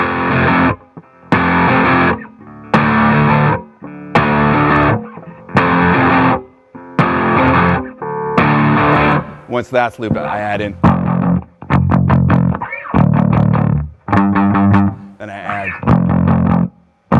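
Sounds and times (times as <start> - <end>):
heavily distorted electric guitar chords: 0.0 - 17.1
speech: 9.5 - 10.9.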